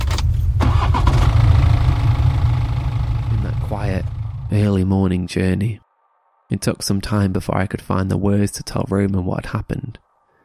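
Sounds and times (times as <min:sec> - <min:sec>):
car engine starting with ignition key: 0:00.0 - 0:04.8
speech: 0:04.6 - 0:05.8, 0:06.5 - 0:10.0.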